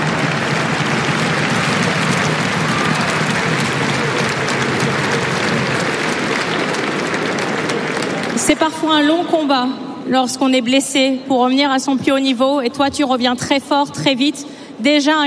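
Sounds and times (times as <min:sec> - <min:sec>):
audience applauding: 0:00.0 - 0:08.7
speech: 0:08.6 - 0:15.2.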